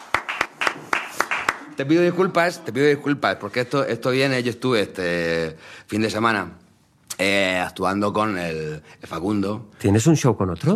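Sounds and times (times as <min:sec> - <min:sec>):
audience clapping in a slow even rhythm: 0:00.0 - 0:02.1
speech: 0:01.8 - 0:06.6, 0:07.2 - 0:10.7.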